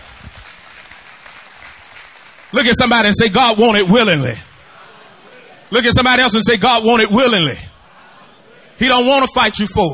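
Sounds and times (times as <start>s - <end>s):
audience hand clap of praise: 0.0s - 3.1s
speech: 2.5s - 4.5s, 5.7s - 7.6s, 8.8s - 9.9s.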